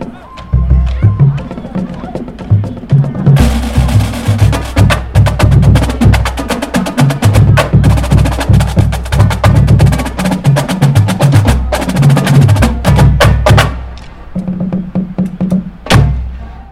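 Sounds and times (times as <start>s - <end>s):
drum corps drum line playing: 0.0s - 16.4s.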